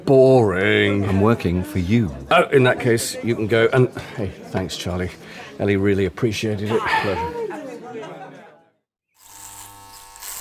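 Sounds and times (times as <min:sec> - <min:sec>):
speech: 0:00.0 - 0:07.4
electric razor buzzing during a shave: 0:09.2 - 0:10.3.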